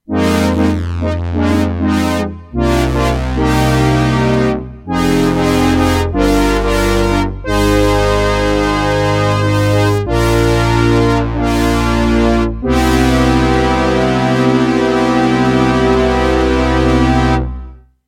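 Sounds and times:
horns: 0.1s - 17.7s.

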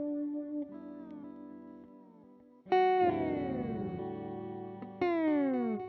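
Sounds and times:
Poly Effects Beebo tape stop effect: 2.9s - 5.7s.

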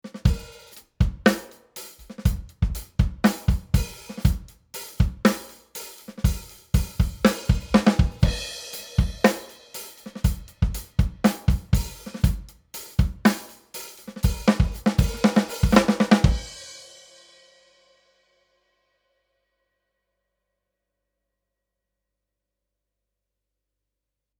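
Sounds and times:
bass drum: 0.3s - 1.4s, 2.0s - 5.4s, 6.3s - 9.4s, 10.2s - 13.3s, 14.2s - 16.6s.

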